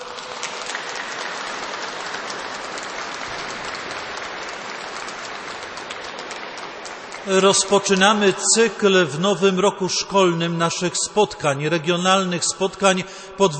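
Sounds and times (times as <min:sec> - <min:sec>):
warm applause from audience: 0:00.0 - 0:09.0
speech: 0:07.2 - 0:13.5.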